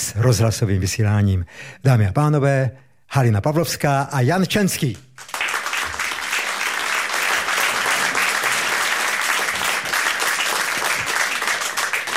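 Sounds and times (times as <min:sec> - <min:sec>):
speech: 0:00.2 - 0:05.1
audience applause: 0:05.2 - 0:12.1.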